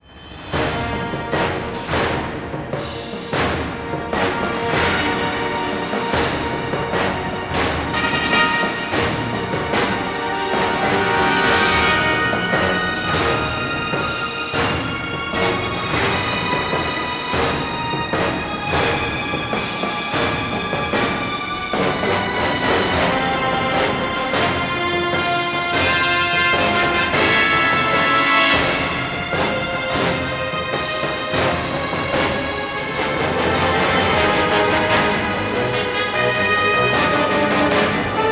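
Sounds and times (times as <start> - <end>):
Sicily action music: 0.0 - 38.3.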